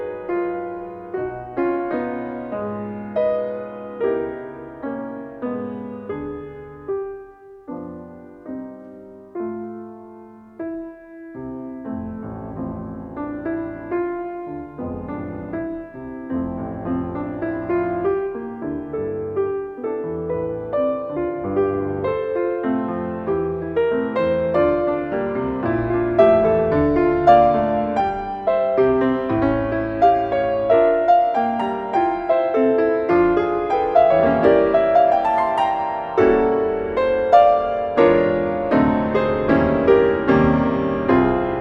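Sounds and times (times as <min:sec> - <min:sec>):
piano nocturne in D-flat: 0:00.0 - 0:41.6.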